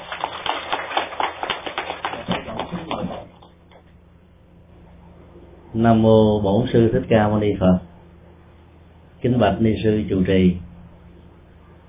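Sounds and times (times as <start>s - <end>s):
audience applause: 0.0s - 3.5s
speech: 5.8s - 7.9s, 9.4s - 10.6s.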